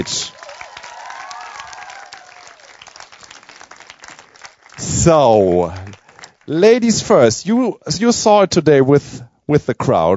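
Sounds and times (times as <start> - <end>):
speech: 0.0 - 0.4, 4.8 - 5.9, 6.5 - 10.1
audience applause for guests on stage: 0.0 - 6.8.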